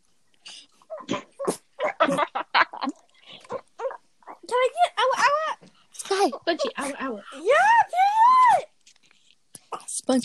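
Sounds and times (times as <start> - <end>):
dog snorting and yelping: 0.5 - 2.3, 3.3 - 7.8.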